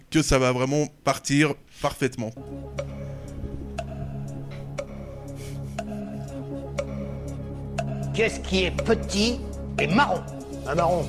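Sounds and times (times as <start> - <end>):
speech: 0.1 - 2.9, 8.2 - 11.0
clock ticking: 2.4 - 10.8
low musical drone: 2.4 - 11.0.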